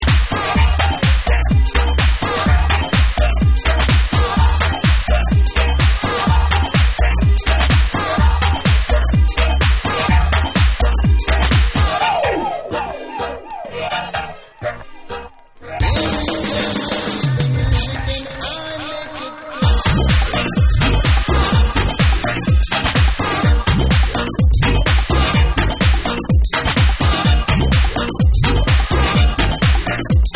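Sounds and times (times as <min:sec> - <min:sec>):
dub music: 0:00.0 - 0:30.3.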